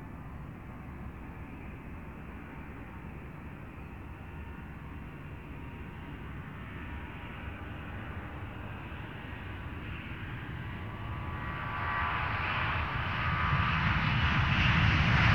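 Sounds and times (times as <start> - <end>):
DC-10 aircraft taking off: 5.2 - 15.3.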